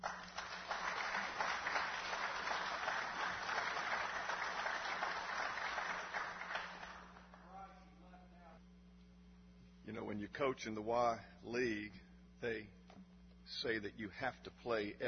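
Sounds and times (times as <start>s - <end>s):
audience applause welcoming a guest speaker: 0.0s - 7.4s
speech: 10.2s - 12.8s, 13.5s - 15.0s.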